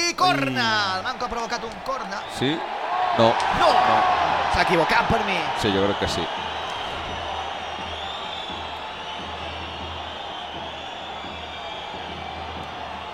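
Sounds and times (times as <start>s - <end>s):
speech: 0.2s - 6.5s
stadium crowd whistling at the referee: 1.4s - 13.1s.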